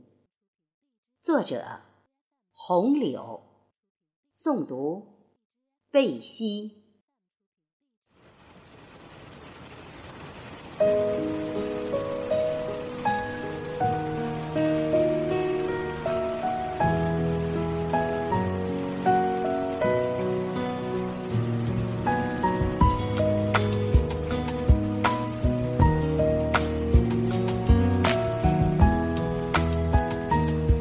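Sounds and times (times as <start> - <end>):
speech: 1.2 - 1.9, 2.6 - 3.5, 4.4 - 5.1, 5.9 - 6.8, 10.8 - 11.5
rain pattering on glass: 8.1 - 30.8.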